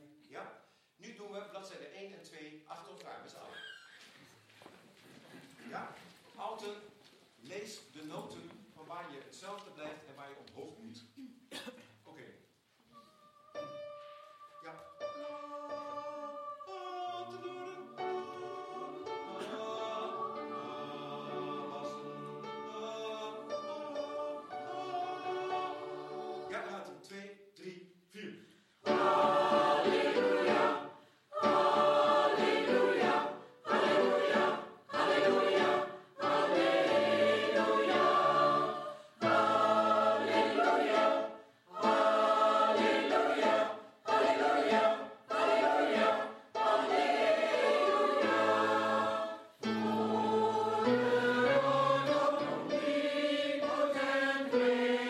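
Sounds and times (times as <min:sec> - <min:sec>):
SATB choir singing together: 0:12.9 - 0:26.9, 0:28.8 - 0:55.0.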